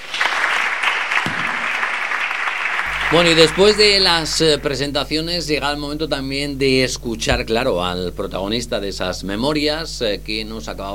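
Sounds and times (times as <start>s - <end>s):
audience applause: 0.0s - 4.9s
speech: 3.1s - 10.9s.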